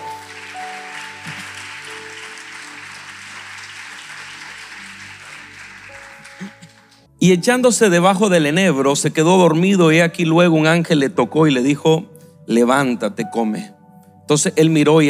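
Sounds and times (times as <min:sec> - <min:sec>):
audience applause: 0:00.0 - 0:07.1
speech: 0:07.2 - 0:15.0.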